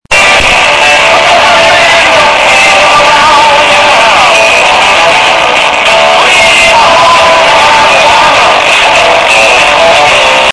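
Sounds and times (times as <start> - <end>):
distorted loud audio: 0.0 - 10.5.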